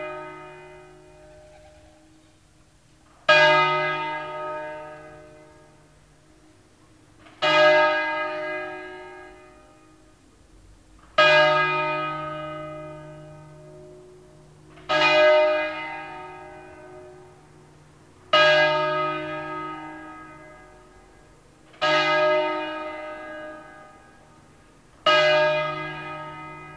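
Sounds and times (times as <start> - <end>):
church bells ringing for a funeral: 0.0 - 2.2, 3.0 - 6.5, 7.2 - 10.2, 11.0 - 26.7.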